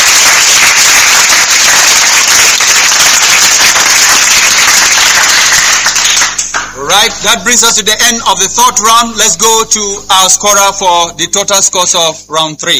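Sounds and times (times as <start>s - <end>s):
audience applause: 0.0s - 7.2s
speech: 7.1s - 12.7s.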